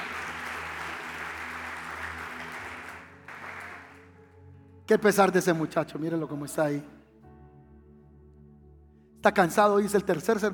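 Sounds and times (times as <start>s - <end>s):
audience applauding: 0.0s - 4.2s
speech: 4.9s - 7.0s, 9.2s - 10.5s.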